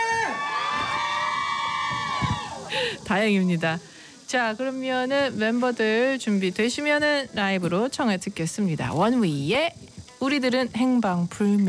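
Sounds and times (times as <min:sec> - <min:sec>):
crowd of fans cheering and screaming: 0:00.0 - 0:02.8
speech: 0:02.8 - 0:11.6.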